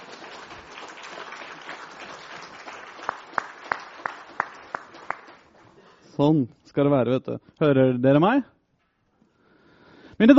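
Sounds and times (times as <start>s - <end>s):
sharp evenly spaced claps: 0.0s - 5.6s
audience applause: 0.0s - 5.8s
speech: 6.2s - 8.5s, 10.2s - 10.3s.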